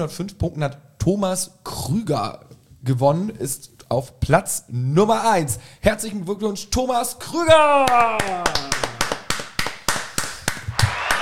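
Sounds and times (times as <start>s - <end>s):
speech: 0.0s - 8.7s
applause: 7.8s - 11.1s.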